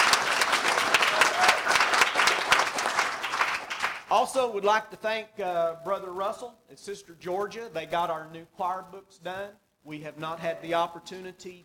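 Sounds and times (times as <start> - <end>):
audience applause: 0.0 - 4.1
speech: 4.2 - 11.6.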